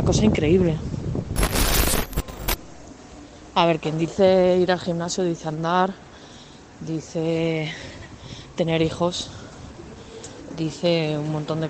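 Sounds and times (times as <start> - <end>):
speech: 0.0 - 0.9, 3.6 - 6.0, 6.8 - 8.0, 8.6 - 9.4, 10.6 - 11.6
strong wind blowing straight into a microphone outdoors: 0.0 - 1.4.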